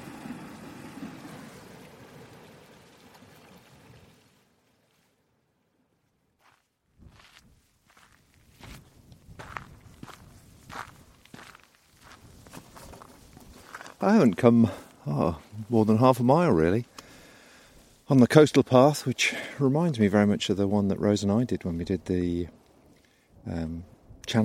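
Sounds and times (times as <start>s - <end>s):
footsteps on a coastal path on a steep climb: 6.4s - 15.5s
speech: 14.0s - 16.9s, 18.1s - 22.6s, 23.4s - 24.4s.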